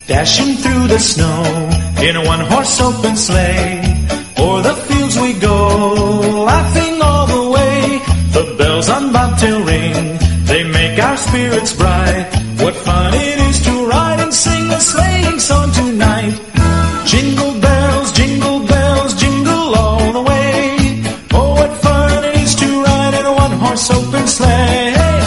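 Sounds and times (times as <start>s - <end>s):
jingle bell: 0.0s - 25.2s.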